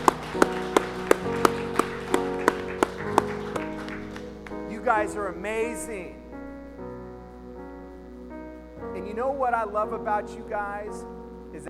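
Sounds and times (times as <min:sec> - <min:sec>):
audience clapping in time: 0:00.0 - 0:05.0
sustained musical tone: 0:00.0 - 0:11.6
speech: 0:04.9 - 0:06.2, 0:09.2 - 0:11.6.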